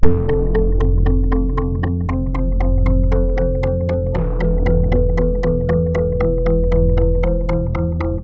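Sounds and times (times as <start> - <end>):
polyphonic synth: 0.0 - 8.2.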